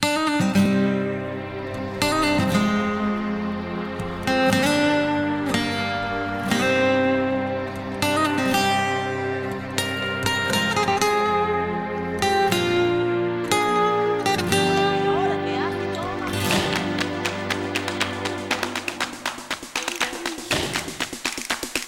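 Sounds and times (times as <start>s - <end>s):
stock music: 0.0s - 21.8s.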